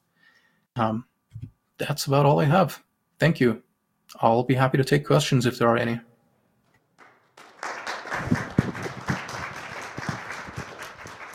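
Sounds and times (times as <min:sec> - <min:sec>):
speech: 0:00.8 - 0:01.1, 0:01.8 - 0:06.1
audience applause in the room: 0:07.0 - 0:11.3.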